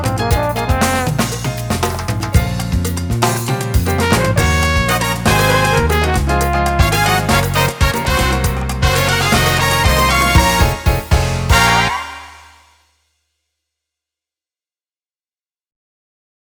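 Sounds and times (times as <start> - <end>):
salsa jazz music: 0.0 - 12.6.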